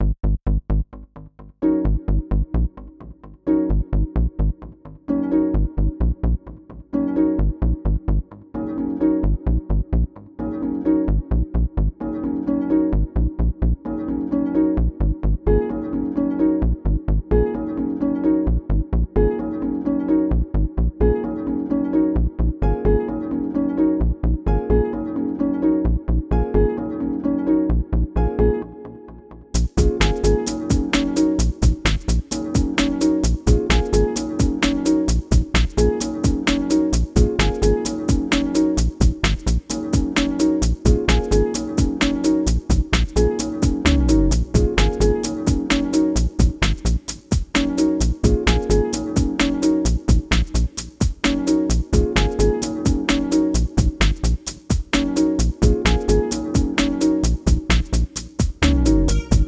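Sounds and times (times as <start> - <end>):
atmospheric ambient groove music: 1.6 - 59.4.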